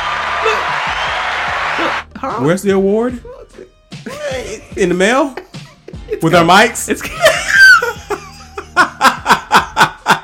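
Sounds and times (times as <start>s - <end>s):
crowd applause: 0.0s - 2.0s
speech: 1.9s - 3.4s, 4.3s - 5.5s, 6.1s - 7.3s
laughter: 6.9s - 10.2s.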